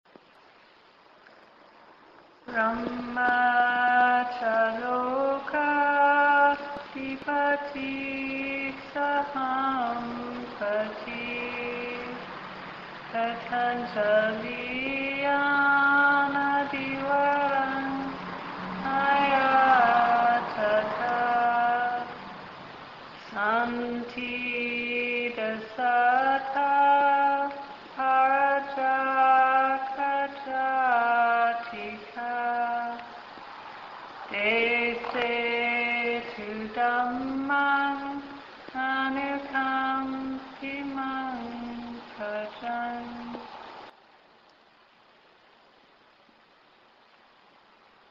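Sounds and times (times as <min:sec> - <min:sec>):
person chanting a traditional request for a Dhamma teaching: 0:02.5 - 0:12.3, 0:13.1 - 0:22.4, 0:23.2 - 0:33.2, 0:34.2 - 0:43.5.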